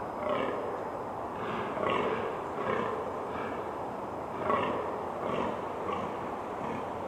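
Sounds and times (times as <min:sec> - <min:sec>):
fallow deer groaning with deep hoarse calls: 0:00.2 - 0:00.7, 0:01.3 - 0:03.7, 0:04.3 - 0:06.9.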